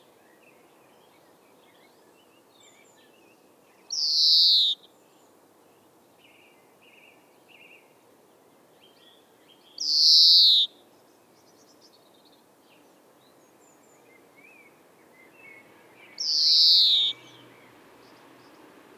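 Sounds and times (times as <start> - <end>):
European greenfinch Chloris chloris song with twittering trills and wheezing note: 1.0 - 4.9, 8.8 - 10.8, 13.2 - 18.9.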